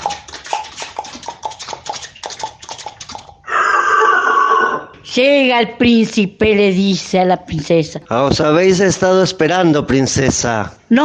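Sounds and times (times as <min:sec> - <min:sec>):
horse hooves clopping: 0:00.0 - 0:03.4
rasping neigh-like cry: 0:03.4 - 0:05.0
speech: 0:05.2 - 0:11.0.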